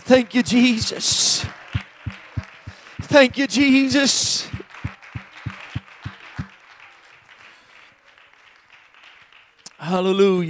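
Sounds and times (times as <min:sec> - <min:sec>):
crowd clapping and cheering: 0:00.0 - 0:09.9
speech: 0:00.1 - 0:01.6, 0:03.1 - 0:04.6, 0:09.8 - 0:10.4
deep evenly spaced thumps: 0:01.5 - 0:03.4, 0:04.5 - 0:06.5.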